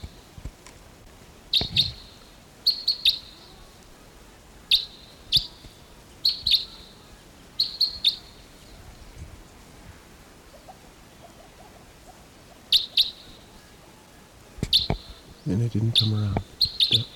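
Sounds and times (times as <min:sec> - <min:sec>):
wild type 2 red crossbill calls: 0:01.5 - 0:03.8, 0:04.7 - 0:08.7, 0:10.0 - 0:17.1
speech: 0:15.5 - 0:17.1.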